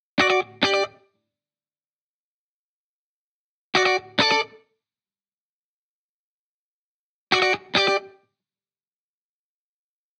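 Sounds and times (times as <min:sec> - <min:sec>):
70s guitar: 0:00.2 - 0:01.1, 0:03.7 - 0:04.7, 0:07.3 - 0:08.3.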